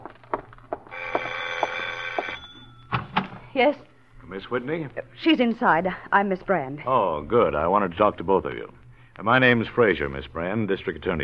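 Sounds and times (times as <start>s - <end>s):
doorbell ringing: 0.9s - 3.0s
speech: 3.6s - 11.2s.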